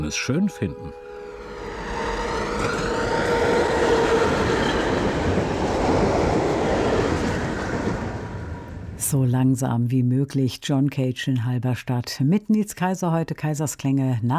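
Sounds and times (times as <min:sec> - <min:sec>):
speech: 0:00.0 - 0:01.0, 0:09.1 - 0:14.3
tram riding: 0:00.0 - 0:09.3.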